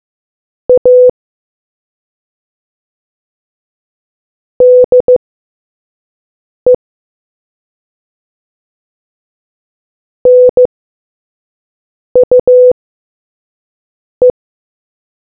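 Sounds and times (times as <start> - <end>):
morse code beeps: 0.7 - 1.1, 4.6 - 5.2, 10.3 - 10.7, 12.2 - 12.8.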